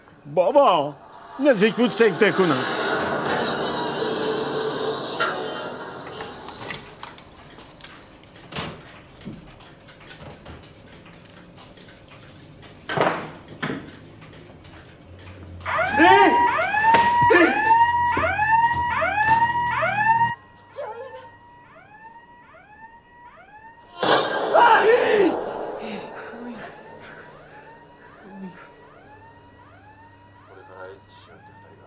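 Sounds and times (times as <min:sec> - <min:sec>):
speech: 0:00.2 - 0:02.9
burglar alarm siren: 0:00.7 - 0:08.2, 0:15.6 - 0:31.8.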